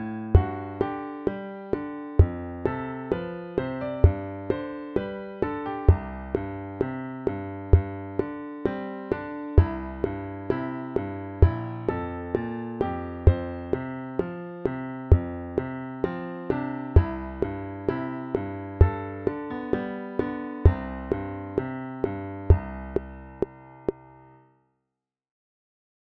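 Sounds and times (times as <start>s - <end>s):
metronome clicking: 1.7s - 24.1s
walking bass line in C major: 2.2s - 2.8s, 4.0s - 4.6s, 5.9s - 8.3s, 9.6s - 16.2s, 17.0s - 19.8s, 20.6s - 24.0s.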